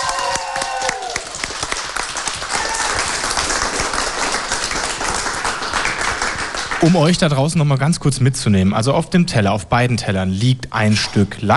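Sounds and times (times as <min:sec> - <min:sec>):
audience clapping for both teams on a cooking show: 0:00.0 - 0:07.2
speech: 0:06.8 - 0:11.5.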